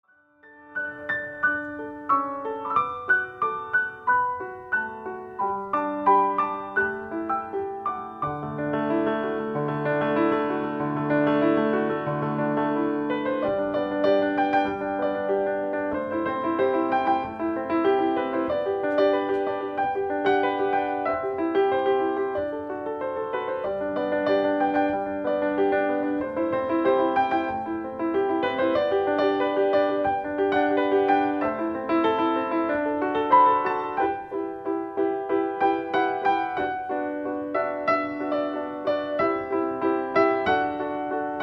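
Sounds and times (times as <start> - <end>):
piano medley: 0.0 - 41.4.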